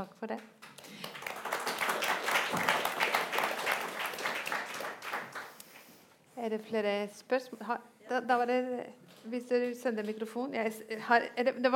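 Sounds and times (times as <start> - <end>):
speech: 0.0 - 1.0, 6.4 - 11.7
audience applause: 0.6 - 5.6.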